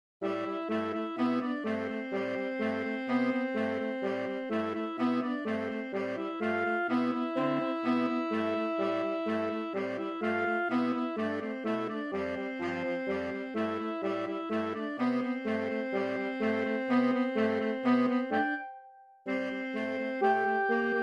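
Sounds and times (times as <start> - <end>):
saxophone ensemble playing a suite: 0.2 - 21.0.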